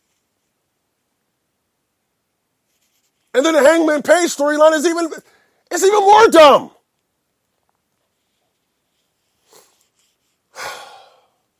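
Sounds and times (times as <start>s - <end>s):
speech: 3.4s - 6.8s
deep breath: 5.2s - 5.7s, 10.5s - 11.4s.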